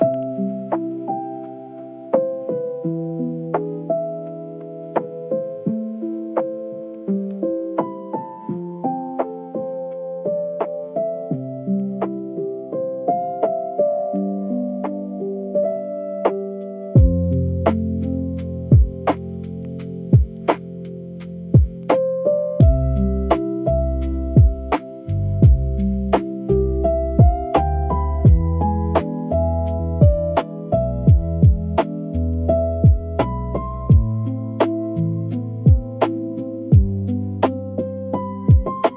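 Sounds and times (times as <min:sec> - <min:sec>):
emotional lo-fi piano music: 0:00.0 - 0:38.9.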